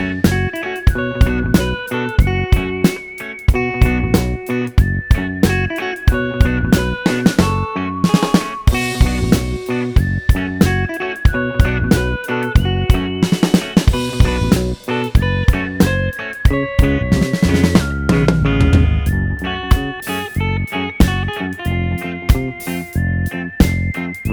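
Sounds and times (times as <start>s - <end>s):
drums: 0.0s - 24.3s
guitar: 0.0s - 24.3s.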